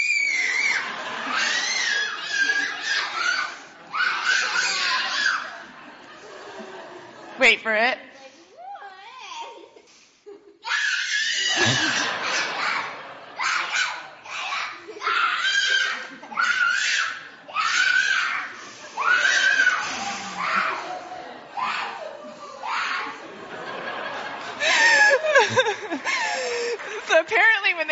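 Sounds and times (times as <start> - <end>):
young child shrieking and squealing joyfully at Christmas: 0.0 - 5.5, 10.6 - 20.9
laughter: 0.5 - 7.6, 11.4 - 17.6, 18.5 - 27.5
speech: 7.4 - 8.1.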